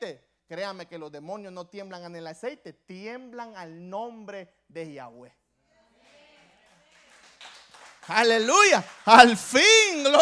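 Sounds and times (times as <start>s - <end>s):
speech: 0.0s - 5.4s, 8.1s - 10.2s
audience clapping: 6.0s - 10.2s.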